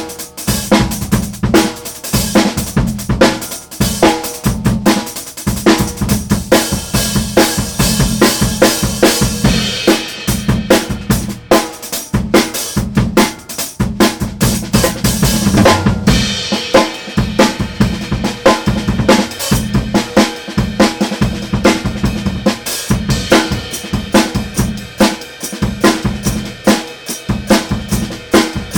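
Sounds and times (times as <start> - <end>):
jungle remix hi-hats: 0.0 - 28.7.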